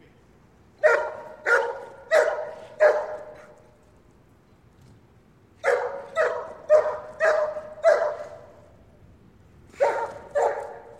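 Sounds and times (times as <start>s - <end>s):
German Shepherd barking: 0.8s - 3.6s, 5.6s - 8.6s, 9.8s - 10.9s.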